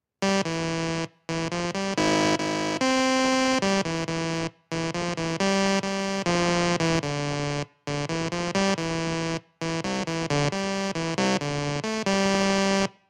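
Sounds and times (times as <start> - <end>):
computer music: 0.2 - 12.9.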